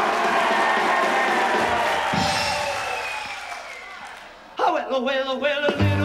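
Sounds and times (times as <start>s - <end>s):
audience applause and cheering: 0.0s - 4.6s
speech: 5.0s - 5.9s.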